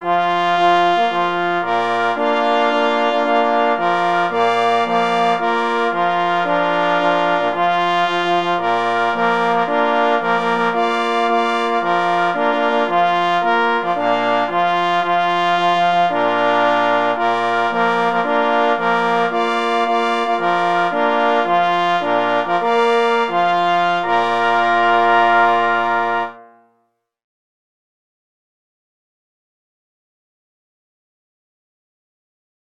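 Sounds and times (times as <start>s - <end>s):
two pless horns and two parforce horns: 0.0s - 26.7s.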